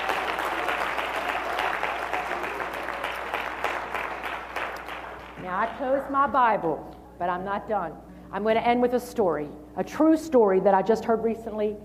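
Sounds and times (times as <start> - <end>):
audience applause: 0.0 - 5.4
speech: 5.5 - 11.8.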